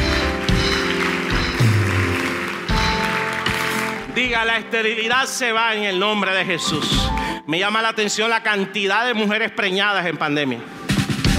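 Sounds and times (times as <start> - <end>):
audience applause: 0.0 - 4.4
speech: 4.2 - 10.8.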